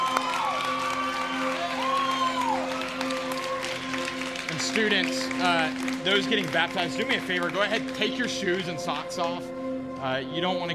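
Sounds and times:
students clapping and cheering: 0.0s - 9.5s
speech: 4.7s - 10.7s.

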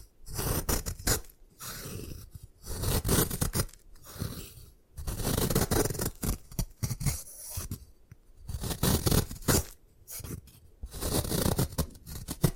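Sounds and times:
gym chalk being crushed and scraped: 0.0s - 12.5s.

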